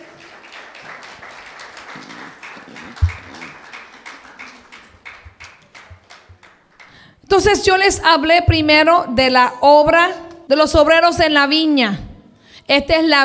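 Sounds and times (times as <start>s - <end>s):
audience applause: 0.0s - 7.0s
speech: 7.3s - 12.0s, 12.7s - 13.2s.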